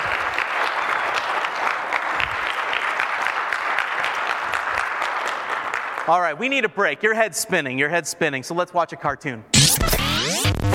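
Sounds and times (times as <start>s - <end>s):
audience applause: 0.0s - 6.2s
speech: 6.1s - 10.0s.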